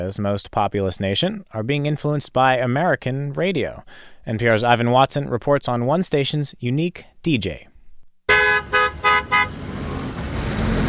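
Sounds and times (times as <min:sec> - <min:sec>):
speech: 0:00.0 - 0:07.7
car horn honking in a traffic jam: 0:08.3 - 0:09.7
steady rumble of engines and traffic: 0:08.3 - 0:10.8.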